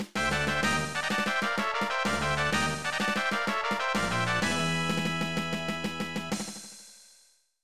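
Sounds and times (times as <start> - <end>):
fanfare: 0.2 - 6.3.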